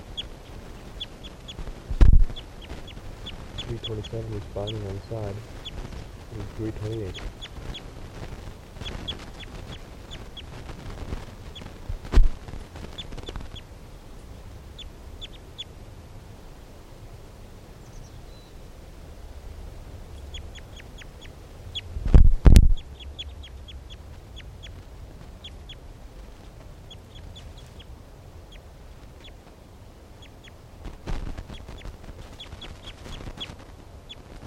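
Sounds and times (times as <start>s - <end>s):
bird calling in high chirps: 0.0s - 15.8s, 17.8s - 18.6s, 20.1s - 29.5s, 30.1s - 30.6s, 31.2s - 34.4s
steady hiss: 0.0s - 34.4s
loud low thumps: 1.6s - 2.4s, 11.8s - 12.6s, 22.0s - 22.9s
speech: 3.8s - 7.4s.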